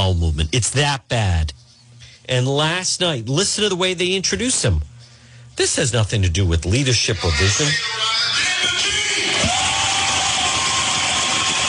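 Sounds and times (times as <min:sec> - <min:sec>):
speech: 0:00.0 - 0:01.6, 0:02.3 - 0:04.9, 0:05.6 - 0:08.8
audience applauding and cheering: 0:09.2 - 0:11.6.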